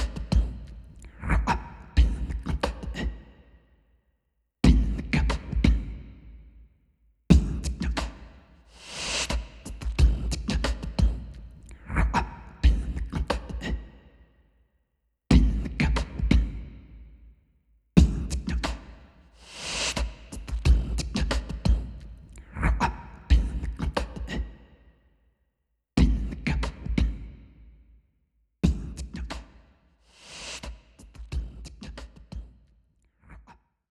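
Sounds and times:
beatbox: 0.0 - 3.3, 4.6 - 6.0, 7.3 - 14.0, 15.3 - 16.7, 18.0 - 24.6, 26.0 - 27.2, 28.6 - 32.6.

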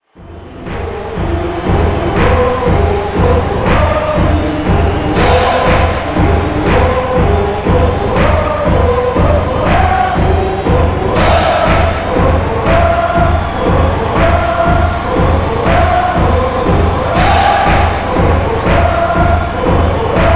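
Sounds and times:
choir chanting: 0.0 - 20.3.

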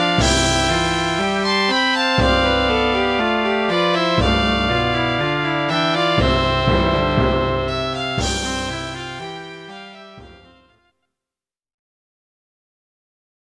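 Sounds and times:
synthesizer music: 0.0 - 10.6.

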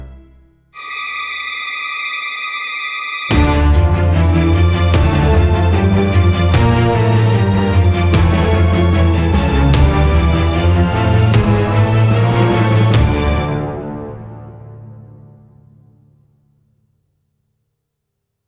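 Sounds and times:
outro music: 0.8 - 14.3.

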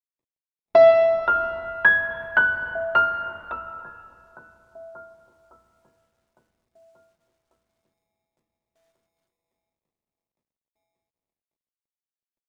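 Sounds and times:
piano one shot: 0.8 - 5.3.

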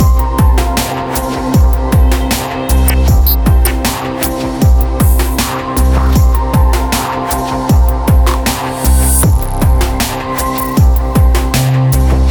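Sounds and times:
space menu music loop: 0.0 - 12.2.

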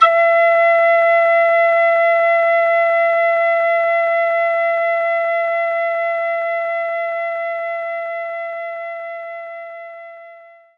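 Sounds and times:
whistle on E4: 0.0 - 7.6.

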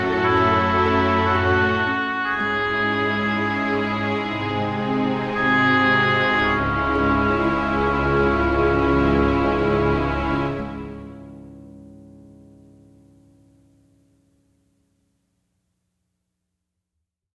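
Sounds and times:
campaign music: 0.0 - 11.4.

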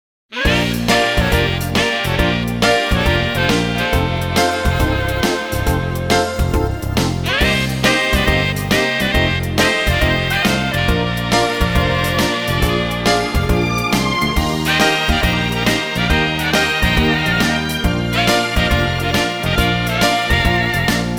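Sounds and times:
instrumental music: 0.4 - 21.1.

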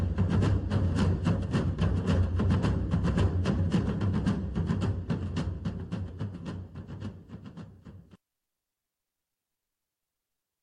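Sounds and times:
march drum only: 0.0 - 8.2.

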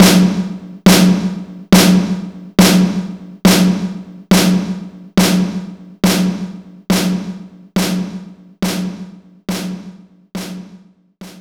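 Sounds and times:
power snare drum: 0.0 - 11.3.

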